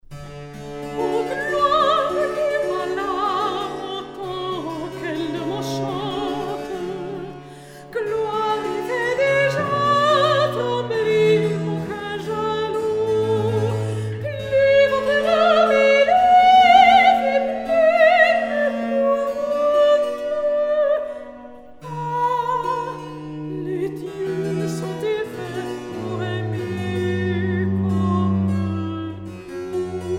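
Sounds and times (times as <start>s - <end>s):
recitative singing: 1.0s - 30.1s.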